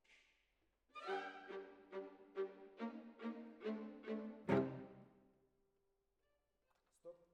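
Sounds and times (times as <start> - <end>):
cellos playing: 1.0 - 5.1.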